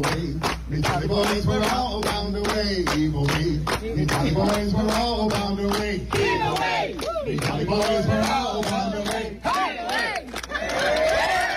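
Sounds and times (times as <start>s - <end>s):
speech: 0.0s - 10.1s
crowd cheering: 6.1s - 11.5s.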